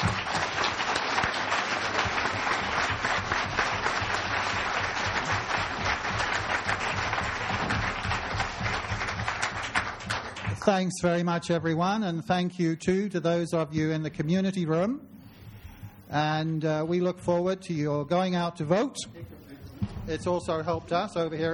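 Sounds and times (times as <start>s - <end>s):
audience applause: 0.0s - 10.6s
speech: 10.6s - 15.1s, 16.1s - 19.4s, 20.0s - 21.5s.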